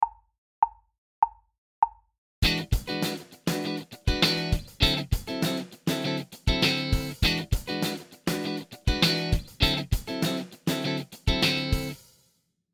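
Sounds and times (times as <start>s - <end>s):
funk accenting E9 and D9 chords: 2.4s - 12.0s.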